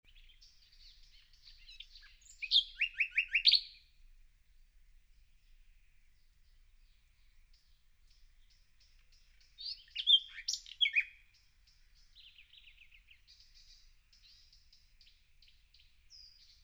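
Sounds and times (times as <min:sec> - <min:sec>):
common nightingale song: 0:00.0 - 0:16.6.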